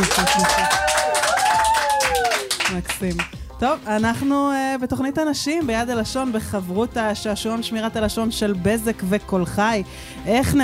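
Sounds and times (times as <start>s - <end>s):
speech: 0.0s - 0.8s, 2.9s - 10.6s
group of women clapping rhythmically on a game show: 0.0s - 3.5s
tuneful music: 0.0s - 10.6s.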